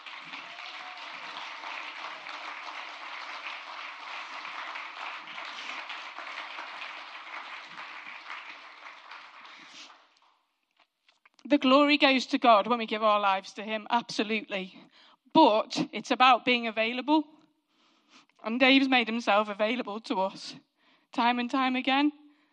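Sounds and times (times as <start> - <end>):
round of applause: 0.0 - 10.4
speech: 11.5 - 14.8, 15.4 - 17.3, 18.4 - 22.2.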